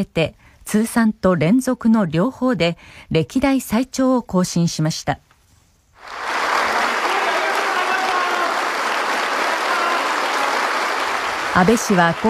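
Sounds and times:
speech: 0.0s - 5.3s, 11.6s - 12.2s
staff applauding: 6.0s - 12.2s.

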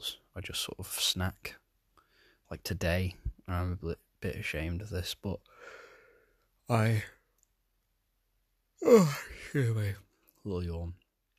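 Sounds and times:
speech: 0.0s - 1.6s, 2.5s - 5.8s, 6.7s - 7.2s, 8.8s - 11.0s
person giving a contented yawn: 8.8s - 9.6s.

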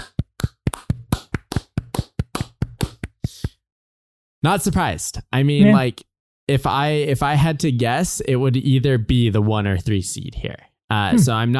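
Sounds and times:
hand clapping: 0.0s - 3.6s
speech: 4.4s - 11.5s.

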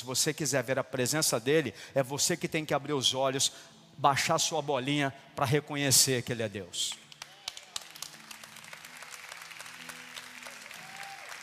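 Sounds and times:
speech: 0.0s - 7.0s
crowd applauding: 7.0s - 11.4s.

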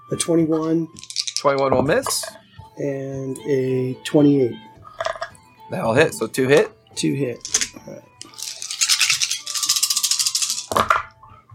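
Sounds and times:
speech: 0.1s - 4.7s, 5.7s - 8.1s
dice rattling in a cup: 0.9s - 2.2s, 7.4s - 11.0s.

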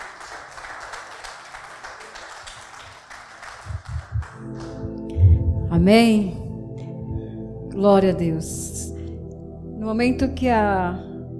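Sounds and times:
applause: 0.0s - 5.0s
speech: 5.8s - 6.4s, 7.8s - 8.7s, 9.8s - 11.1s.

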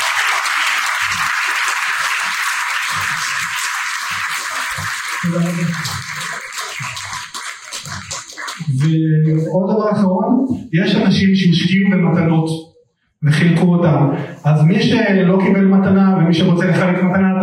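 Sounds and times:
audience applause: 0.0s - 9.0s
speech: 5.2s - 6.0s, 8.8s - 12.6s, 13.2s - 17.4s.

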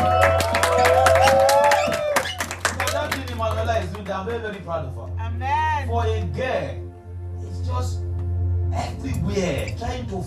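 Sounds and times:
audience clapping: 0.0s - 4.7s
speech: 4.4s - 6.9s, 7.7s - 8.1s, 8.7s - 10.2s.

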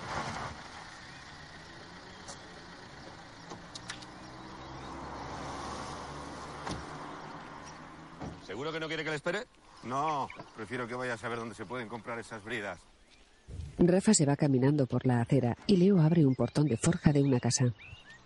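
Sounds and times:
police car parking on a street: 0.0s - 13.5s
speech: 8.6s - 12.9s, 13.8s - 18.0s.

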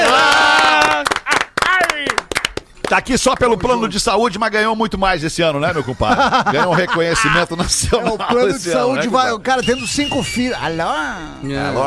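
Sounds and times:
people shouting and cheering: 0.0s - 2.2s
burst of applause: 0.0s - 3.5s
speech: 2.9s - 11.8s
laughter: 5.6s - 9.1s.

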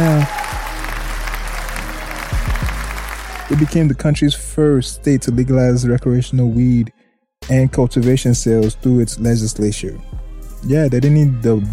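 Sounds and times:
audience applause: 0.0s - 3.9s
speech: 3.5s - 11.7s.

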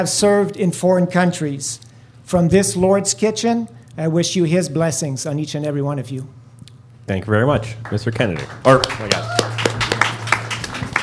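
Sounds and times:
speech: 0.0s - 6.4s, 7.1s - 9.6s
audience clapping: 7.7s - 11.0s.

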